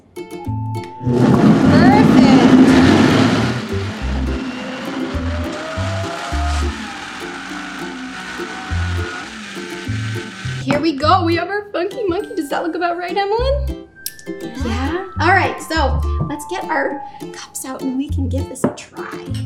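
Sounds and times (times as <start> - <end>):
blender running on smoothie setting: 1.0 - 10.8
speech: 11.3 - 13.8, 14.4 - 19.4.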